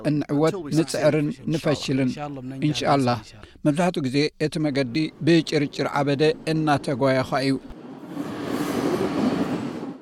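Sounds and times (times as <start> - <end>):
speech: 0.0 - 8.3
train rumbling at a station in Ventimiglia Italy: 7.7 - 9.9.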